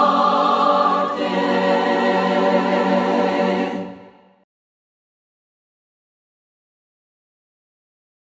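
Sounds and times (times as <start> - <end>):
voices singing hymns a cappella: 0.0 - 4.4.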